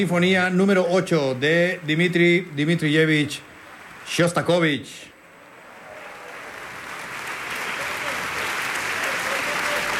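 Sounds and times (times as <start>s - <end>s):
speech: 0.0s - 3.5s, 4.1s - 5.1s
concert hall audience applauding an orchestra: 5.8s - 9.9s.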